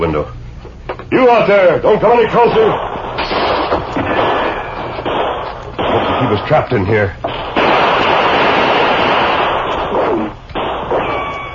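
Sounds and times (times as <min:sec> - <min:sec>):
speech: 0:00.0 - 0:00.4, 0:01.1 - 0:02.9, 0:06.2 - 0:07.6
gunfire from every side of a besieged shack in a drama: 0:02.3 - 0:11.5.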